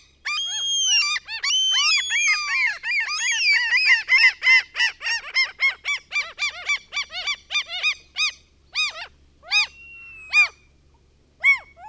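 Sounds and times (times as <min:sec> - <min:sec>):
Common gull yelping and mewing calls: 0:00.0 - 0:10.6, 0:11.4 - 0:11.8.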